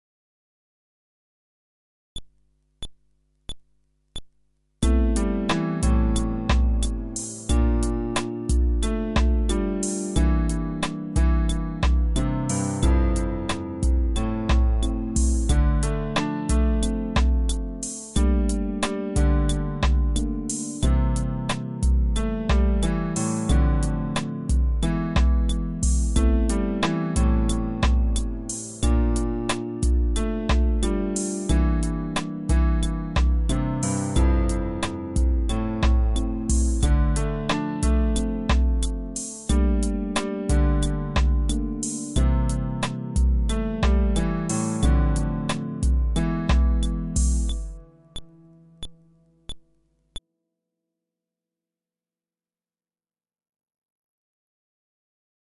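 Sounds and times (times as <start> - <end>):
fretless bass groove: 4.8 - 47.8.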